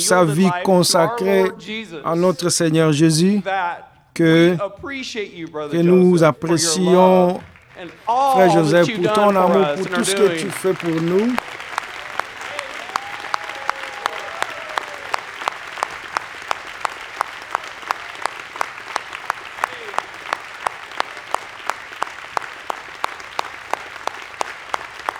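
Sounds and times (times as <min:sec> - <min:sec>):
faint voice calling out: 0:00.0 - 0:03.5, 0:04.2 - 0:04.8, 0:05.6 - 0:11.4
speech: 0:00.0 - 0:11.6
laughter: 0:00.0 - 0:15.2
sustained audience applause: 0:00.0 - 0:25.1.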